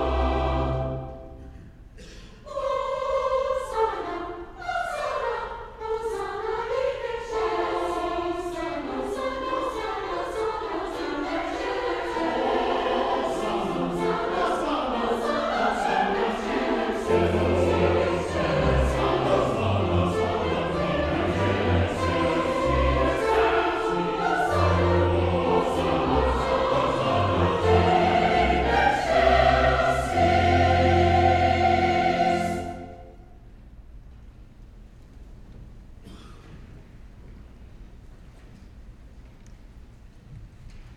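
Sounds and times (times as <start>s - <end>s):
chancel choir singing a mass: 0.0s - 1.6s, 2.4s - 33.3s.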